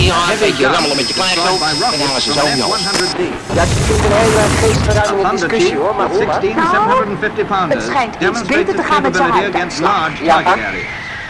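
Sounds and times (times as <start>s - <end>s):
speech: 0.4s - 11.0s
napalm bombs exploding on a storage area: 3.1s - 5.5s.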